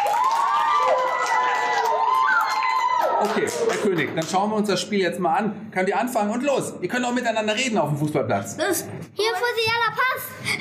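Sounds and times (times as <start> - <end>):
audience applauding: 0.0 - 4.7
speech: 3.2 - 10.5.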